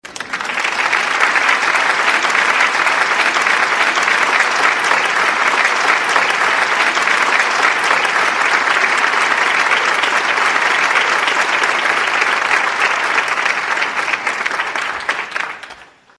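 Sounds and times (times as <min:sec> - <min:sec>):
applause: 0:00.0 - 0:16.1.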